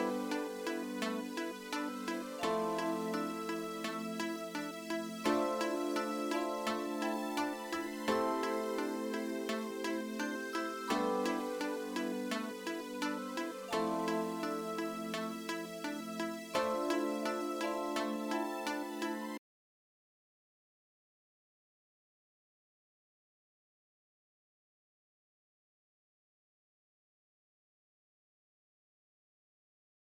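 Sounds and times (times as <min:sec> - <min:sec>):
music: 0:00.0 - 0:19.4.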